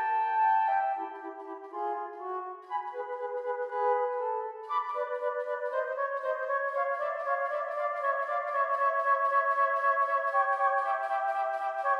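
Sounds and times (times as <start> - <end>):
music piece: 0.0 - 11.9.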